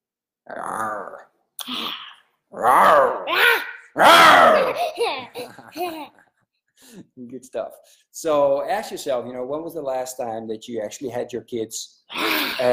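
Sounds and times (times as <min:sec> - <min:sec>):
person imitating a growl: 0:00.4 - 0:04.8, 0:12.1 - 0:12.7
speech: 0:07.3 - 0:12.7.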